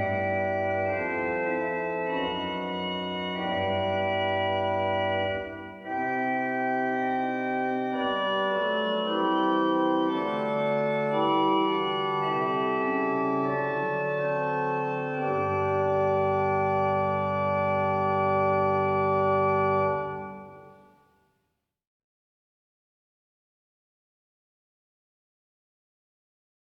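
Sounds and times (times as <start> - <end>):
chorale prelude music: 0.0 - 21.0.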